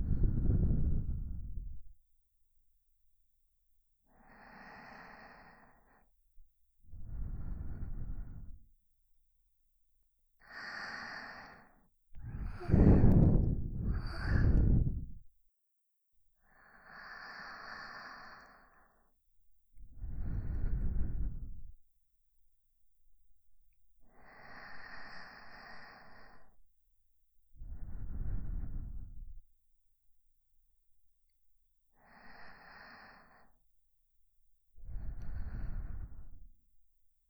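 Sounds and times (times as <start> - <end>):
sleeping breath loop on left channel: 0.0 - 1.9, 4.1 - 6.1, 6.9 - 8.6, 10.5 - 15.2, 16.5 - 19.0, 19.9 - 21.7, 24.2 - 26.6, 27.6 - 29.4, 32.0 - 33.6, 34.8 - 36.4.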